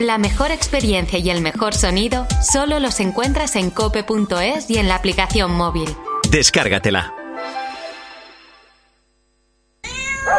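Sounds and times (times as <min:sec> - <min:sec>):
speech: 0:00.0 - 0:07.2
pet cat meowing: 0:09.8 - 0:10.3.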